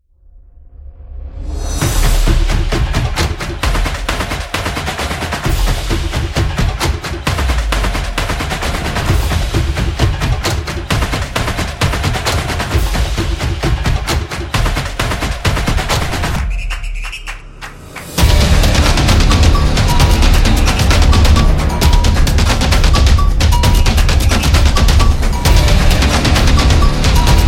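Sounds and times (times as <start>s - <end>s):
sport hybrid samba trailer music: 0.8s - 27.4s.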